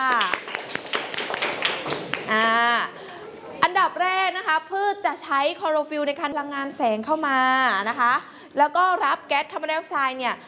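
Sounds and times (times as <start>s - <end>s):
classroom clapping: 0.0s - 2.5s
speech: 2.3s - 3.0s, 3.6s - 10.4s.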